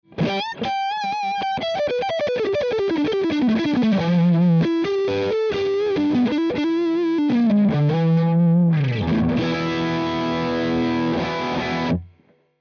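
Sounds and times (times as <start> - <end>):
lead guitar through Orange 2x12 cabinet: 0.0 - 12.2.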